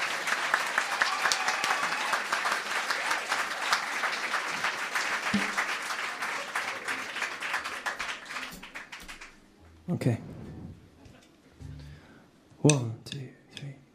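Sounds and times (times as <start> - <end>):
audience applause: 0.0 - 9.6
speech: 9.9 - 10.3, 12.6 - 13.2.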